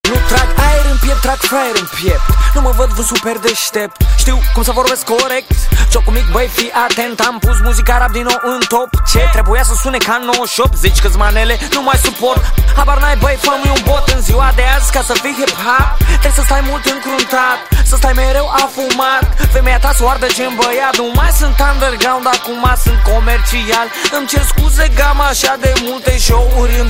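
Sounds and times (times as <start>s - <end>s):
hip hop music: 0.0s - 26.8s.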